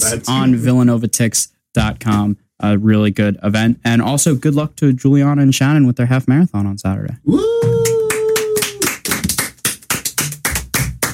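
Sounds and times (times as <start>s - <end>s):
speech: 0.0s - 7.8s
hand clapping: 7.6s - 11.1s.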